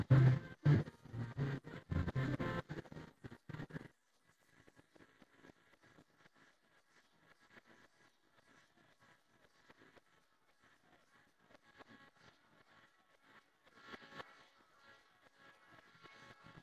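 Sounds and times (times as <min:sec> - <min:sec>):
guitar: 0:00.0 - 0:03.7.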